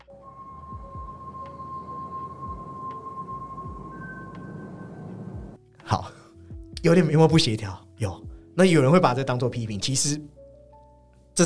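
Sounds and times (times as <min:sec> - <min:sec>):
whistle-like sound from film's opening: 0:00.0 - 0:05.4
speech: 0:05.9 - 0:06.2, 0:06.8 - 0:10.3.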